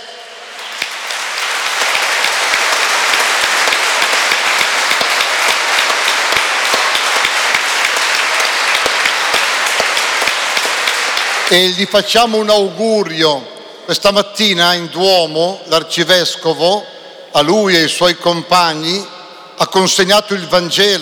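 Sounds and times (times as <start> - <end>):
audience applause: 0.0 - 12.5
speech: 11.5 - 21.0.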